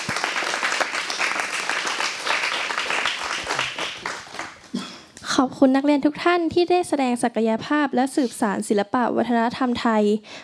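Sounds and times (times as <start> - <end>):
audience applause: 0.0 - 4.7
speech: 5.4 - 10.4.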